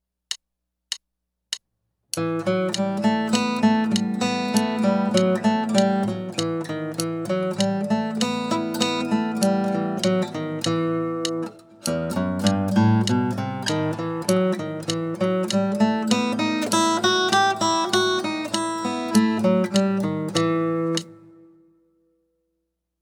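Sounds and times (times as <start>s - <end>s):
picking studies: 0.3s - 22.1s.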